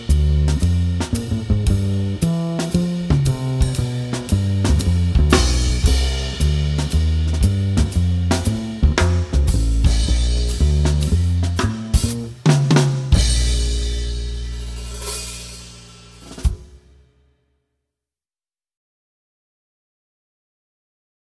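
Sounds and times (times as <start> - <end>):
jazz piano accompaniment without piano soloist: 0.0 - 17.0.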